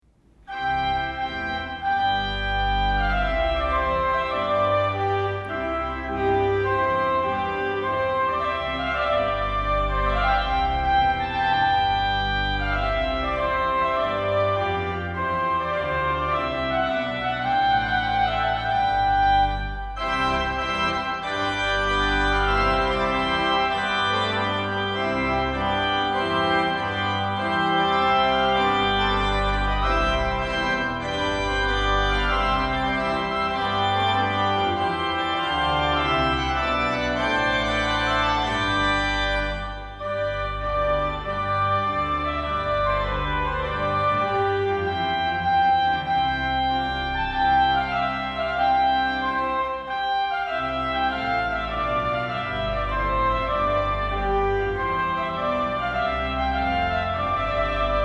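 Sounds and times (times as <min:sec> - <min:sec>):
trumpet piece: 0:00.5 - 0:58.0.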